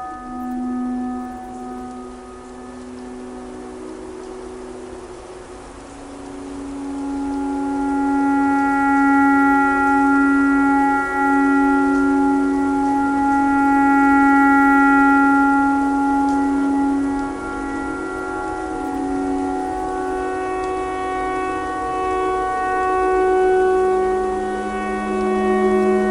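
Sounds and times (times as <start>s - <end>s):
clarinet pentatonic melody imitating a tornado siren: 0.0s - 26.0s.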